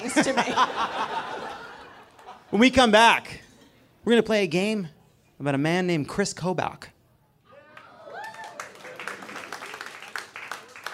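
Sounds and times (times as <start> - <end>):
laughter: 0.0 - 2.7
speech: 0.2 - 1.6, 2.5 - 3.4, 4.0 - 6.9
lukewarm scattered crowd applause: 7.5 - 10.9
voices cheering: 7.5 - 10.9.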